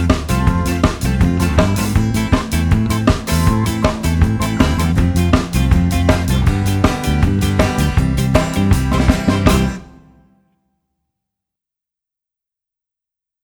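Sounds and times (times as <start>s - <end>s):
karaoke singing: 0.0s - 9.8s.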